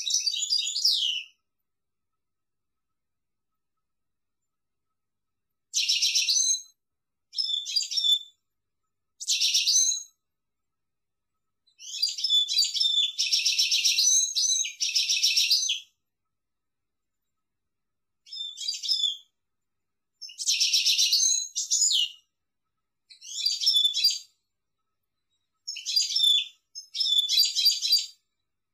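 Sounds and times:
European goldfinch song: 0.0s - 1.6s, 5.6s - 10.3s, 11.3s - 16.2s, 18.2s - 19.4s, 20.1s - 28.7s.

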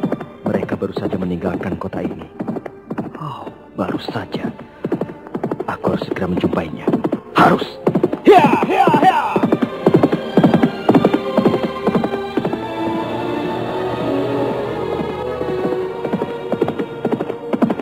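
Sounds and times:
horse hooves clip-clopping: 0.0s - 13.1s, 14.2s - 17.7s
speech: 0.8s - 2.5s, 3.2s - 4.7s, 5.7s - 9.5s.

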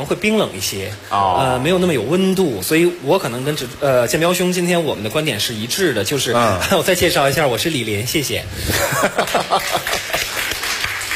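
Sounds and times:
speech: 0.0s - 10.2s
laughter: 8.7s - 10.6s
sparse audience clapping at a live talk event: 9.2s - 11.1s.

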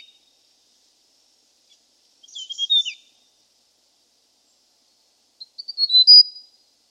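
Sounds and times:
hill prinia chirping and whistled trill: 2.3s - 3.0s, 5.4s - 6.4s.

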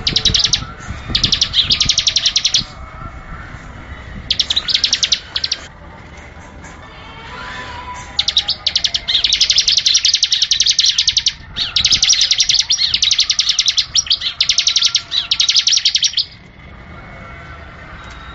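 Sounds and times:
Bar-winged Prinia giving quick high chips: 0.0s - 2.9s, 4.3s - 5.7s, 6.7s - 16.6s.

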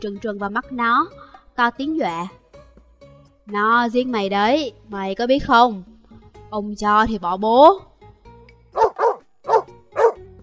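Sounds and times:
speech: 0.0s - 2.4s, 3.5s - 5.9s, 6.5s - 7.9s
dog barking with sharp mid-pitched barks: 8.8s - 10.3s.

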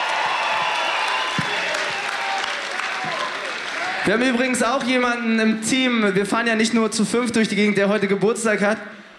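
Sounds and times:
concert crowd applause at the Columbia-Halle for Radio Fritz's birthday: 0.0s - 4.6s
speech: 4.0s - 9.0s.

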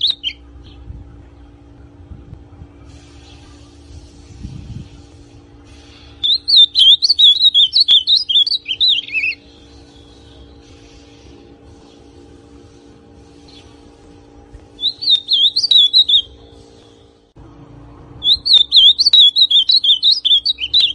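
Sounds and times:
ultramarine grosbeak song: 0.0s - 0.9s, 5.9s - 10.7s, 14.7s - 17.2s, 18.2s - 20.9s.

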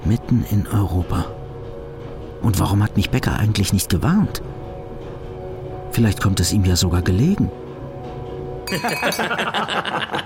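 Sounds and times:
speech: 0.1s - 1.4s, 2.4s - 4.6s, 6.0s - 7.6s, 8.7s - 10.2s
glasses clinking in a toast: 8.7s - 9.6s
men laughing in a hotel restaurant: 8.7s - 10.2s.

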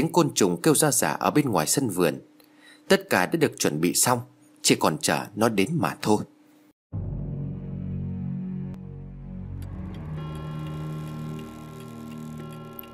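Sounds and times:
speech: 0.0s - 2.3s, 2.9s - 6.3s
low sustained droning tone: 7.0s - 12.9s
clock ticking: 9.6s - 12.9s.

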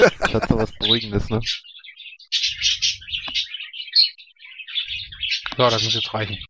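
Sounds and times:
laughter: 0.0s - 1.4s
speech: 0.0s - 1.7s, 5.6s - 6.4s
birds chirping: 0.0s - 6.4s.

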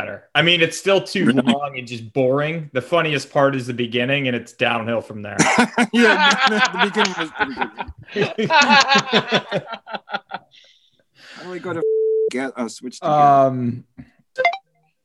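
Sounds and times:
speech: 0.0s - 14.6s
laughter: 1.2s - 1.6s, 5.4s - 10.6s
phone text message notification: 14.4s - 14.6s.

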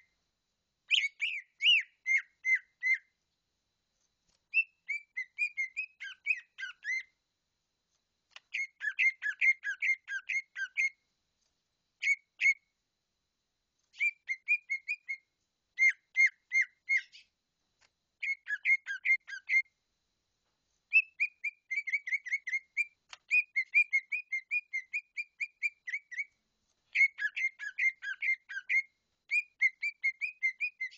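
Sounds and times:
bird singing bright whistled notes in rapid bursts: 0.9s - 3.2s, 4.5s - 7.2s, 8.4s - 11.0s, 12.0s - 12.7s, 13.9s - 17.4s, 18.2s - 19.7s, 20.9s - 30.9s.

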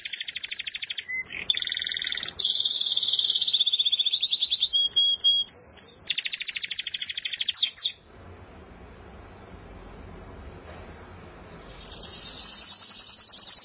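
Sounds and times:
canary-type buzzy trill: 0.0s - 8.0s, 11.0s - 13.6s.

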